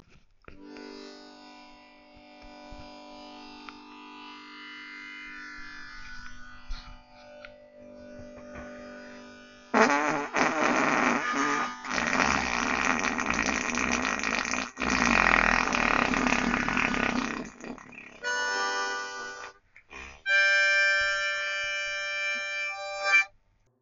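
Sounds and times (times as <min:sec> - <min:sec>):
harmonica: 0:04.4 - 0:23.3.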